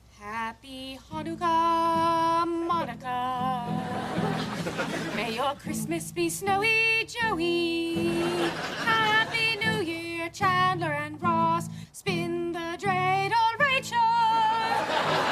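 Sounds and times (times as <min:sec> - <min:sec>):
Christmas song: 0:00.3 - 0:15.3
laughter: 0:03.8 - 0:05.6, 0:08.1 - 0:09.8, 0:14.6 - 0:15.3.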